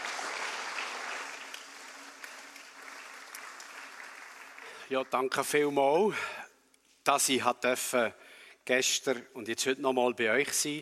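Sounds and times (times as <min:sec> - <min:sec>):
crowd clapping: 0:00.0 - 0:05.6
speech: 0:04.9 - 0:06.4, 0:07.1 - 0:10.8.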